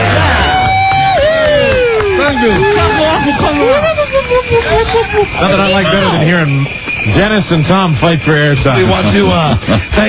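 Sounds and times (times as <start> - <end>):
clapping: 0.0 - 3.8
crowd cheering and whooping at an outdoor Christmas event on a plaza: 0.0 - 6.3
shouted voices: 0.0 - 6.8
crowd babble: 0.0 - 10.0
laughter: 0.0 - 10.0
speech: 2.4 - 2.7, 3.5 - 10.0.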